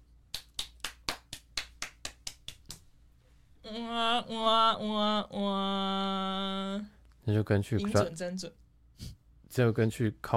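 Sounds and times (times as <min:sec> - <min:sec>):
hand clapping: 0:00.3 - 0:02.9
speech: 0:03.7 - 0:08.6, 0:09.6 - 0:10.3.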